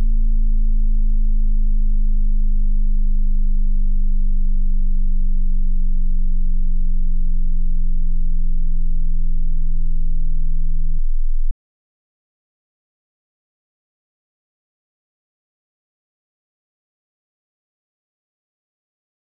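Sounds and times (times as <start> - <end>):
low-frequency sine wave sweep with harmonic: 0.0 - 11.5.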